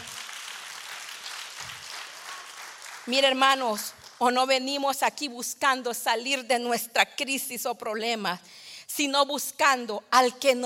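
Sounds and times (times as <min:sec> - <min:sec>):
congregation applauding: 0:00.0 - 0:04.2
speech: 0:03.1 - 0:10.6.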